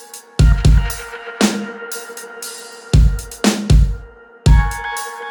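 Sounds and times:
heavy bass: 0:00.4 - 0:01.2, 0:03.0 - 0:04.9.

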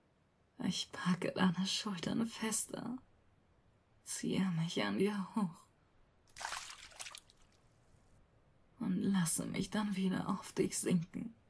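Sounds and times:
speech: 0:00.7 - 0:03.1, 0:04.1 - 0:05.7, 0:08.8 - 0:11.4
water sloshing gently around people: 0:06.3 - 0:07.7.

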